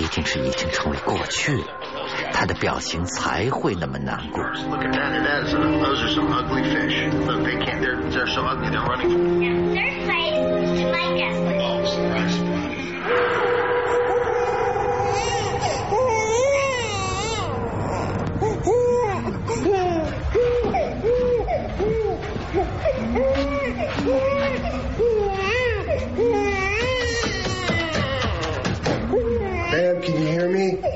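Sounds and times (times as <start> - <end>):
speech: 0.1 - 13.7
baby crying: 13.0 - 30.9.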